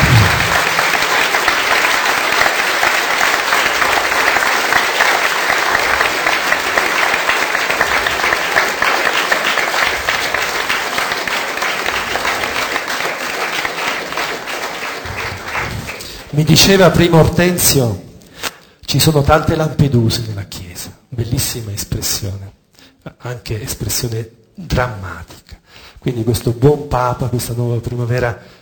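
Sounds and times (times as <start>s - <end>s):
audience applause at a public talk: 0.0s - 16.6s
speech: 16.5s - 18.1s, 18.9s - 20.6s, 21.2s - 28.6s.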